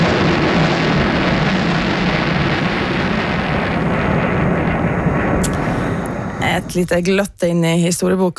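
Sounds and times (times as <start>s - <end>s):
rocket launch from Andøya, Norway, in 1962: 0.0s - 7.4s
speech: 6.8s - 8.3s.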